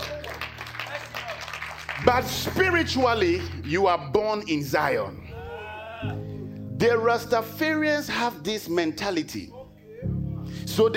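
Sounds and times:
people clapping their hands for God: 0:00.0 - 0:03.9
speech: 0:02.0 - 0:05.2, 0:06.0 - 0:10.1, 0:10.7 - 0:10.9.

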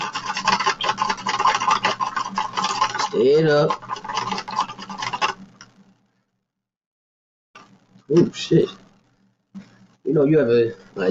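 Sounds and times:
drink being stirred in a glass: 0:00.0 - 0:05.7
speech: 0:03.2 - 0:03.8, 0:08.1 - 0:08.8, 0:10.2 - 0:11.1.

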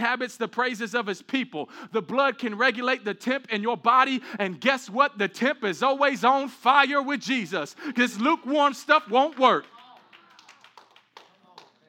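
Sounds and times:
speech: 0:00.1 - 0:09.7
scattered hand claps: 0:08.9 - 0:11.8.

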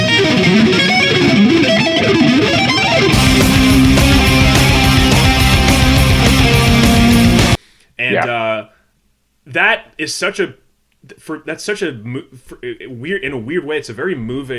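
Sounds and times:
screaming lead guitar doing sweeps: 0:00.0 - 0:07.6
speech: 0:09.5 - 0:14.5.

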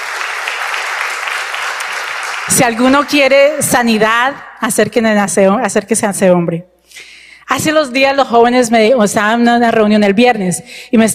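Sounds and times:
audience applause: 0:00.0 - 0:03.2
speech: 0:02.5 - 0:11.1.

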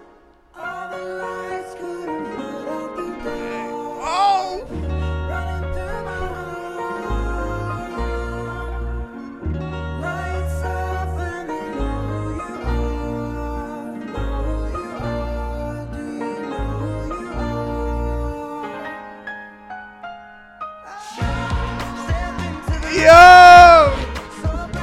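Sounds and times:
person singing: 0:00.0 - 0:19.2, 0:20.8 - 0:24.8
acoustic guitar: 0:00.0 - 0:24.8
bass notes: 0:07.1 - 0:18.4, 0:21.2 - 0:24.8.

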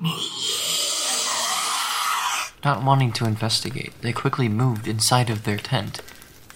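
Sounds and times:
animal growling in the bushes: 0:00.0 - 0:02.6
speech: 0:02.6 - 0:06.2.

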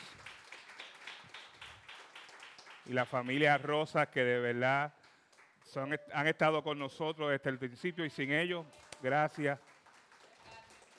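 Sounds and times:
audience applause for visiting family: 0:00.0 - 0:02.9, 0:09.6 - 0:10.9
speech: 0:02.9 - 0:05.0, 0:05.7 - 0:09.7.

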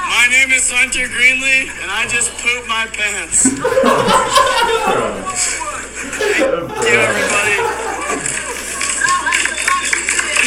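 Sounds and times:
speech: 0:00.2 - 0:07.7
laughter: 0:03.4 - 0:09.3
scattered clapping from a few people: 0:07.3 - 0:10.4.

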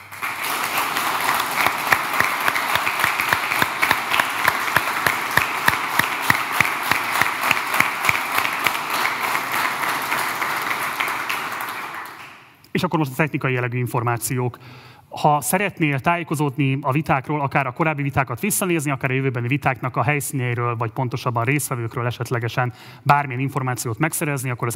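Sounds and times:
audience applauding: 0:00.0 - 0:12.6
speech: 0:12.8 - 0:24.7.

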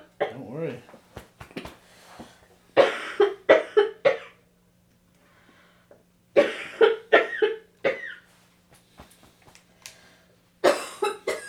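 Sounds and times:
choking coughs: 0:02.8 - 0:04.4, 0:06.4 - 0:08.2, 0:10.6 - 0:11.4.

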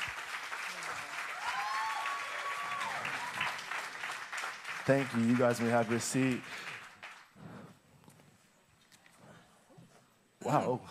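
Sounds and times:
audience clapping and applause: 0:00.0 - 0:07.8
speech: 0:04.9 - 0:06.7, 0:10.6 - 0:10.9.

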